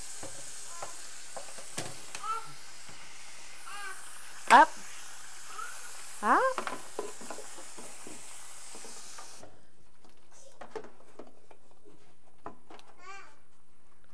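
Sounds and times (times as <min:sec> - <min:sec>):
dishwasher running with spraying water: 0:00.0 - 0:09.5
child babbling: 0:02.2 - 0:02.5, 0:13.0 - 0:13.4.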